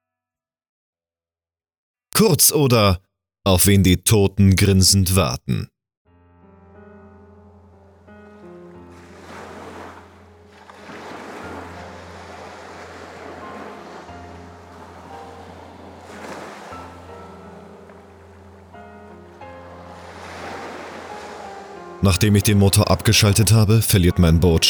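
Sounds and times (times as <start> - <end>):
speech: 2.2 - 5.7, 22.1 - 24.6
gentle waves lapping against boat hull: 8.9 - 18.6, 19.2 - 22.0.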